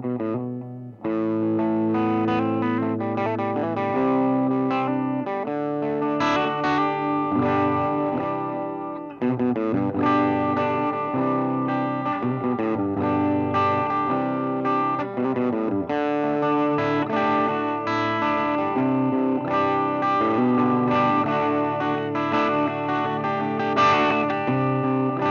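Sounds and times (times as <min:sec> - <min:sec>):
high-gain electric guitar: 0:00.0 - 0:25.2.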